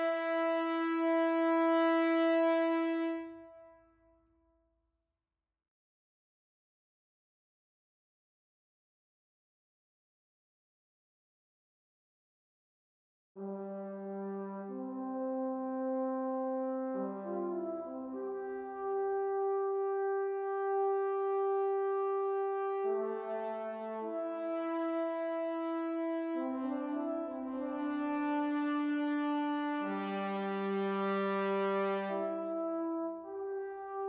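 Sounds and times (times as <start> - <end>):
tenor horn: 0.0 - 4.3, 13.4 - 34.0.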